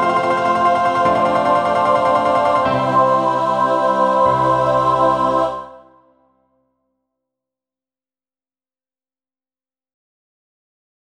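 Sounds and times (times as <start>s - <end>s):
four-part mixed choir singing: 0.0s - 6.3s.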